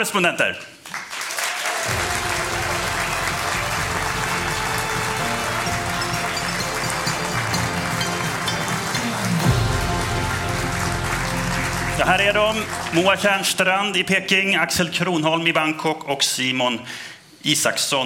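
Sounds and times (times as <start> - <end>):
speech: 0.0 - 0.8, 12.0 - 18.0
audience applause: 0.8 - 14.1.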